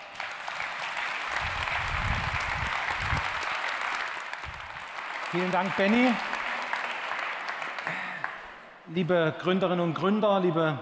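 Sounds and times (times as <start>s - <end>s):
audience applause: 0.0s - 8.6s
speech: 5.3s - 6.3s, 8.9s - 10.8s.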